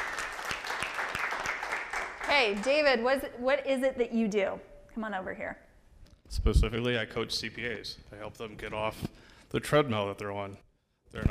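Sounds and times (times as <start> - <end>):
audience applause: 0.0 - 2.7
speech: 2.3 - 5.6, 6.4 - 11.2.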